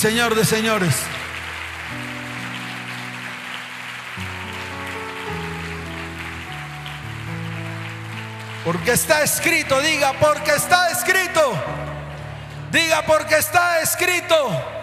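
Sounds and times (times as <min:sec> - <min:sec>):
speech: 0:00.0 - 0:01.2, 0:08.6 - 0:11.8, 0:12.7 - 0:14.8
audience applause: 0:00.0 - 0:11.3
sustained keyboard chords: 0:00.0 - 0:14.8.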